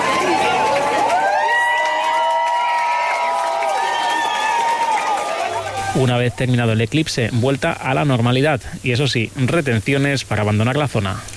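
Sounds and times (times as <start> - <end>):
scattered clapping: 0.0 - 5.9
large crowd cheering after eclipse: 0.0 - 6.3
speech: 6.0 - 11.3.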